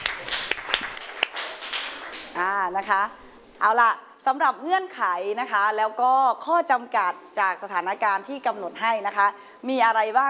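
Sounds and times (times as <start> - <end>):
classroom clapping for a classmate: 0.0 - 2.6
speech: 2.6 - 10.2.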